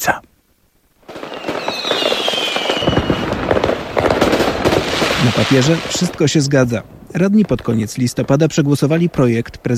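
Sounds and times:
speech: 0.0s - 0.3s, 5.2s - 9.7s
fireworks and firecrackers exploding: 1.0s - 9.7s
high whistling firework rocket: 1.1s - 6.1s.

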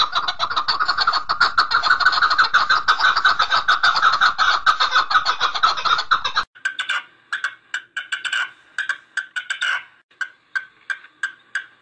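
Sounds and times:
partridge rough chucking notes: 0.0s - 11.8s.

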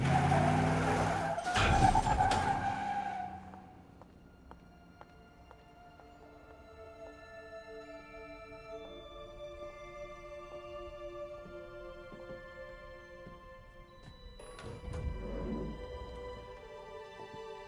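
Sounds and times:
bus skidding to a stop with tire screech: 0.0s - 4.0s.

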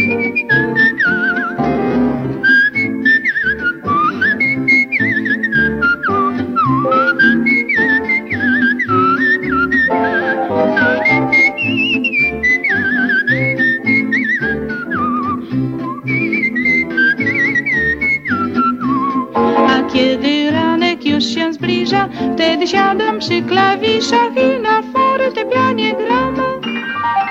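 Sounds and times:
cheerful whistling of a melody: 0.0s - 23.0s, 24.1s - 27.2s.

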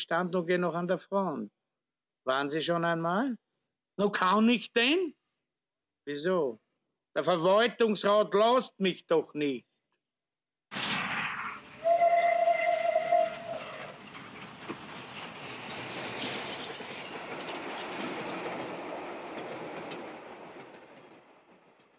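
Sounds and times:
speech: 0.0s - 1.6s, 2.2s - 3.4s, 4.0s - 5.2s, 6.1s - 6.6s, 7.2s - 9.7s
train rumbling on rails: 11.4s - 21.9s
brief whistle-like tone of a train: 11.8s - 13.8s.

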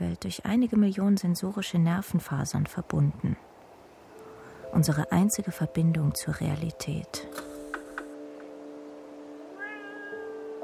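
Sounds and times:
speech: 0.2s - 3.5s, 4.7s - 7.5s
cat meowing: 9.4s - 10.6s.

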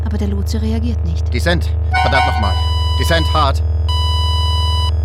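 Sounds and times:
speech: 0.1s - 3.7s
bright high beep: 1.9s - 4.9s
cockpit warning alarm tone: 1.9s - 4.9s.

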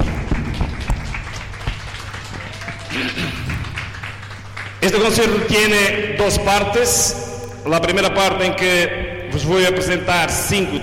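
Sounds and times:
audience applause: 0.0s - 5.1s
speech: 4.8s - 10.8s.

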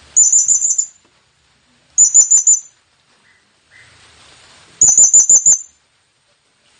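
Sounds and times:
blue-crowned hanging parrot calls: 0.2s - 1.0s, 2.0s - 4.0s, 4.8s - 5.8s.

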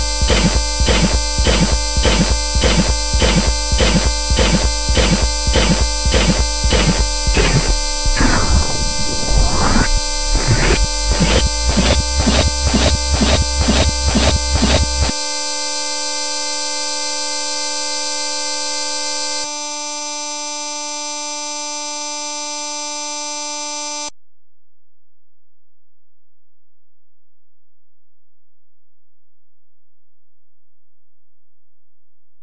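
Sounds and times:
jig tune: 0.1s - 15.1s.

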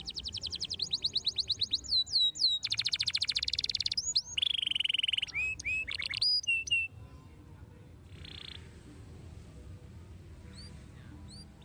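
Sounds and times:
canary singing: 0.0s - 7.0s, 8.1s - 8.7s, 10.4s - 11.6s.

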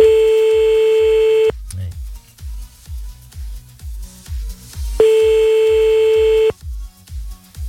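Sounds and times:
steady pulsing beat: 0.0s - 1.5s, 5.0s - 6.5s
telephone ringing tone while placing a radio call: 0.0s - 1.5s, 5.0s - 6.5s.

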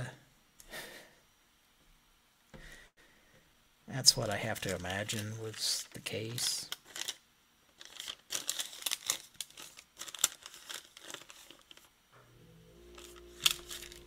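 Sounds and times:
faint steady low hum: 0.0s - 14.0s
speech: 4.0s - 6.8s
sheet of paper with a number saved on it crinkling: 4.2s - 12.0s, 12.8s - 14.0s.

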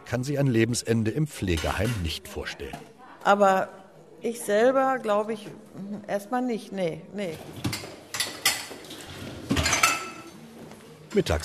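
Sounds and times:
speech: 0.1s - 7.8s, 11.1s - 11.4s
glasses being loaded into a dishwasher by a carer in a common room: 1.4s - 2.4s, 7.6s - 10.4s.

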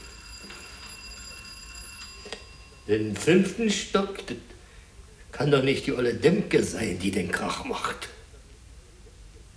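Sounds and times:
doorbell ringing: 0.0s - 4.0s
speech: 2.9s - 4.5s, 5.4s - 8.2s.

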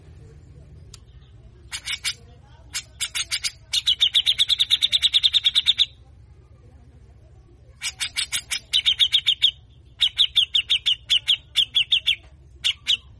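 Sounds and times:
grey-cheeked bulbul rasping buzzy calls: 1.7s - 6.0s, 7.8s - 13.1s.

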